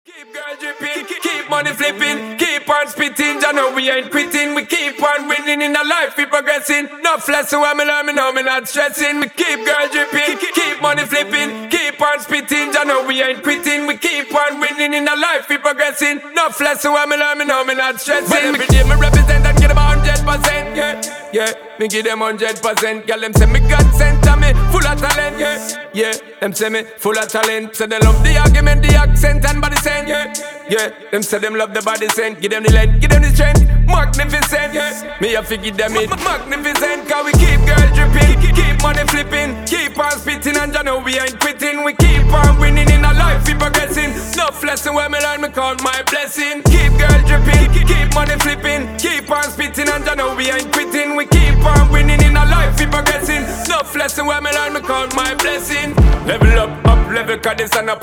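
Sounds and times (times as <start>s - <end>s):
a cappella vocals: 0.0s - 58.0s.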